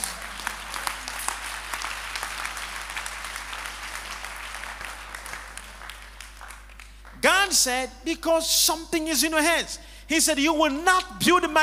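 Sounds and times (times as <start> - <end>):
weak hand clapping from audience: 0.0 - 7.2
speech: 7.5 - 11.6.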